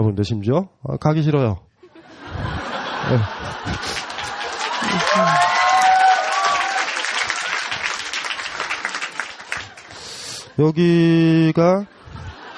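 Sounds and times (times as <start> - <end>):
speech: 0.0 - 1.7, 3.1 - 5.8, 10.6 - 12.0
laughter: 1.8 - 5.8, 12.0 - 12.5
audience clapping: 3.5 - 10.2.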